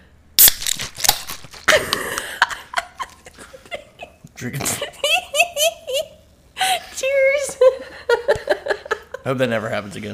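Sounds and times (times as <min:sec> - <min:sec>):
bottle of vitamin water shaking: 0:00.4 - 0:01.9
laughter: 0:01.7 - 0:06.2, 0:07.6 - 0:09.2
speech: 0:04.4 - 0:05.0, 0:09.3 - 0:10.1.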